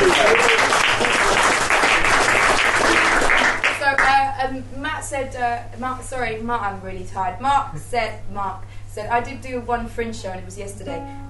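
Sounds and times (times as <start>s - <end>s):
audience applause: 0.0s - 3.8s
speech: 5.1s - 11.2s.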